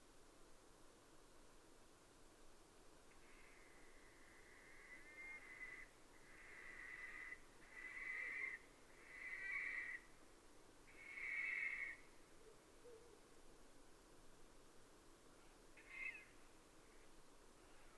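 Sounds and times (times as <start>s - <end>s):
owl screeching: 4.6s - 10.0s, 11.0s - 12.0s, 15.8s - 16.3s.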